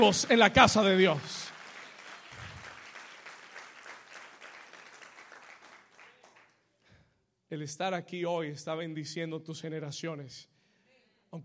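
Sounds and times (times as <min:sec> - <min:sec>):
speech: 0:00.0 - 0:01.4, 0:07.5 - 0:10.5
applause: 0:00.0 - 0:06.7.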